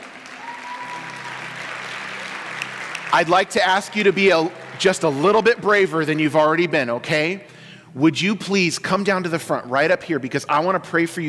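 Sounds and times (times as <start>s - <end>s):
standing church congregation clapping during a service: 0.0s - 6.7s, 10.8s - 11.2s
speech: 3.1s - 11.2s.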